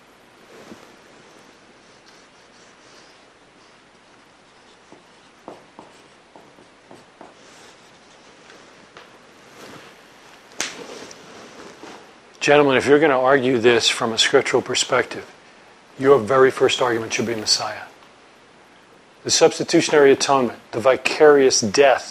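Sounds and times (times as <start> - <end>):
pen strokes scratching: 1.8 - 8.3
speech: 12.4 - 15.4, 16.0 - 17.9, 19.2 - 22.0.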